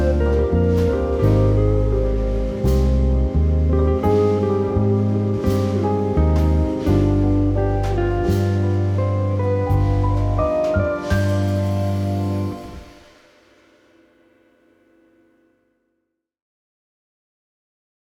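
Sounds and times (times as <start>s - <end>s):
dreamy jazz music: 0.0s - 13.3s.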